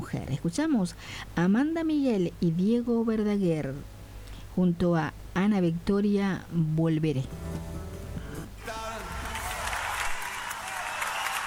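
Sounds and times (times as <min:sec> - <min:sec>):
speech: 0:00.1 - 0:04.0, 0:04.6 - 0:07.5
audience applause: 0:08.6 - 0:11.4.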